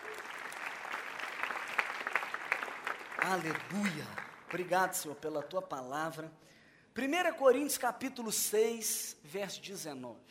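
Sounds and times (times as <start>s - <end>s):
audience applause: 0.0s - 4.8s
speech: 3.2s - 10.2s.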